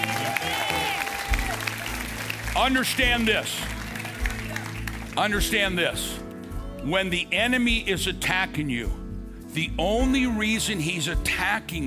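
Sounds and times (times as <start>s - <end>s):
audience clapping: 0.0s - 5.8s
speech: 2.6s - 3.8s, 5.2s - 6.2s, 6.8s - 11.8s.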